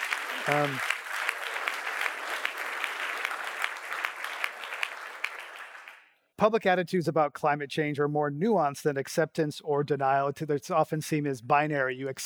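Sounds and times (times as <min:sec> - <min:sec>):
sustained audience applause: 0:00.0 - 0:06.1
speech: 0:00.5 - 0:01.0, 0:06.4 - 0:12.2.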